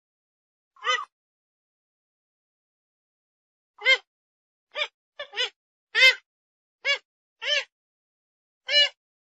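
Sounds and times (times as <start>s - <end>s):
grey-headed swamphen calls: 0.8s - 1.1s, 3.8s - 4.1s, 4.8s - 6.2s.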